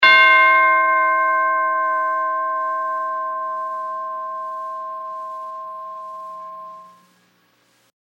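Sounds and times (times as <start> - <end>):
single tubular bell strike: 0.0 - 7.1.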